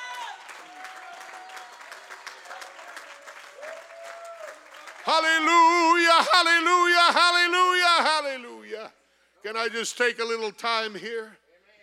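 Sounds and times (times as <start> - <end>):
audience applause: 0.0 - 6.7
speech: 5.0 - 8.5, 9.4 - 11.4.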